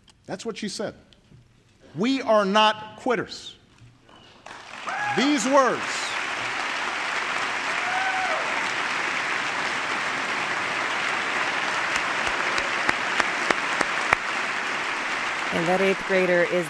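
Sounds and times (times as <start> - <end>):
speech: 0.3 - 1.1, 2.0 - 3.6, 5.2 - 6.0, 15.5 - 16.6
applause in the chamber: 4.4 - 16.6.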